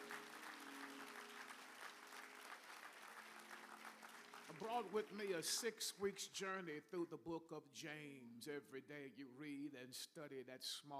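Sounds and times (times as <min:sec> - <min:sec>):
audience applause: 0:00.0 - 0:05.7
speech: 0:04.5 - 0:10.9.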